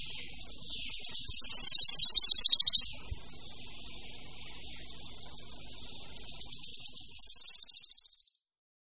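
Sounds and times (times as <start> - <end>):
wood warbler trill song: 0.1 - 3.1, 6.2 - 8.3.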